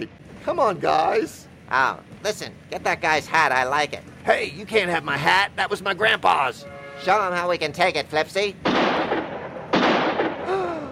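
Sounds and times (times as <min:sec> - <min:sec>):
speech: 0:00.0 - 0:08.8
steady rumbling background: 0:00.0 - 0:10.9
gunshot: 0:08.6 - 0:10.6.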